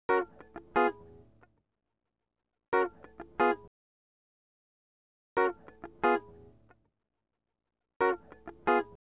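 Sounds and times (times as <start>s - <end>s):
hip hop and RnB guitar in G sharp: 0.1s - 1.6s, 2.8s - 3.7s, 5.4s - 6.8s, 8.0s - 9.0s.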